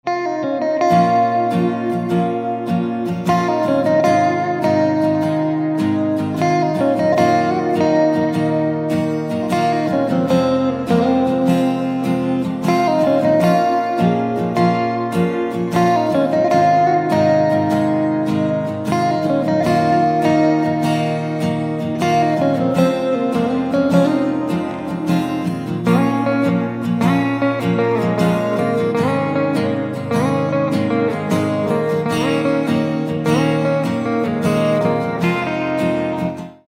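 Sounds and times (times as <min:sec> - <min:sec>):
guitar instrumental ringtone: 0:00.0 - 0:36.6.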